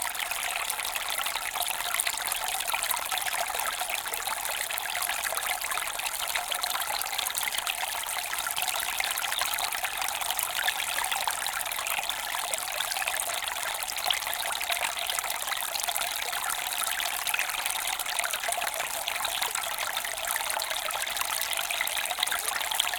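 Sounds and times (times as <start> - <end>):
small river stream flowing: 0.0 - 22.9.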